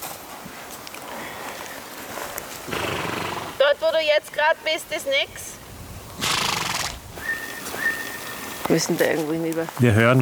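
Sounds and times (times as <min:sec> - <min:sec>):
horse neighing: 0:02.6 - 0:03.7, 0:06.1 - 0:09.2
speech: 0:03.7 - 0:05.6, 0:08.7 - 0:10.2.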